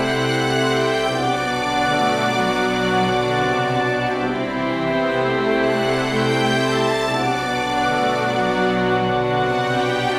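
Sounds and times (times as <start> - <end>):
romantic music at 80 BPM: 0.0 - 10.1.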